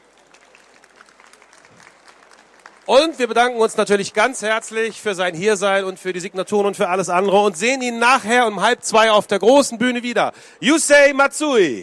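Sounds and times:
audience applause for a young interpreter at a convention signing session: 0:00.0 - 0:05.9
speech: 0:02.9 - 0:11.8.

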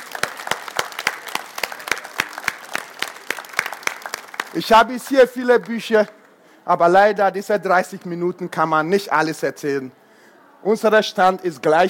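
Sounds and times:
audience applause: 0:00.0 - 0:06.1
speech: 0:04.5 - 0:10.0, 0:10.6 - 0:11.8.

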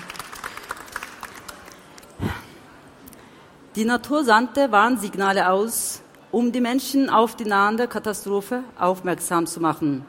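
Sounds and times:
audience applause: 0:00.0 - 0:02.3
speech: 0:03.8 - 0:10.0.

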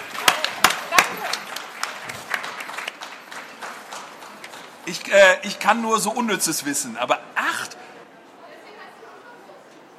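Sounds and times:
applause: 0:00.0 - 0:05.1
speech: 0:04.9 - 0:07.8.

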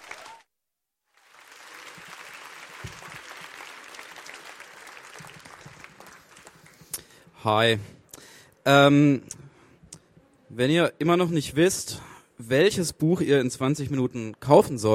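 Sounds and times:
audience applause at a poetry slam: 0:00.0 - 0:00.5, 0:01.1 - 0:07.2
speech: 0:07.4 - 0:08.0, 0:08.7 - 0:09.4, 0:10.6 - 0:14.9.

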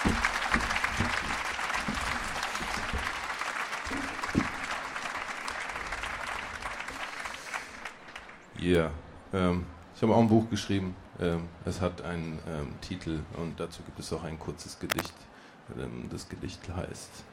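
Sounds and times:
audience applause: 0:00.0 - 0:08.5
speech: 0:08.6 - 0:17.3.

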